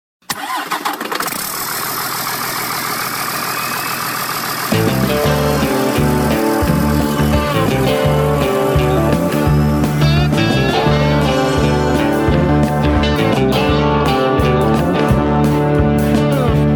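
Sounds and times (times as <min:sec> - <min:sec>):
big truck engine running: 0:01.3 - 0:16.7
music playing: 0:04.7 - 0:16.7.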